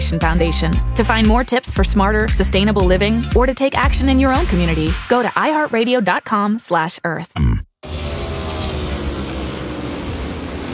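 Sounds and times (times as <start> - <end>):
speech: 0.1 - 8.0
NASCAR race cars roaring at Chicagoland Speedway: 7.8 - 10.7.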